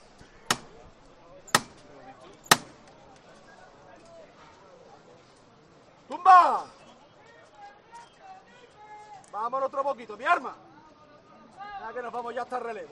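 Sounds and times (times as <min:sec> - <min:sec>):
metal knocker striking a procession float: 0:00.5 - 0:00.8, 0:01.5 - 0:01.9, 0:02.5 - 0:02.8
speech: 0:09.6 - 0:10.7, 0:11.9 - 0:12.9.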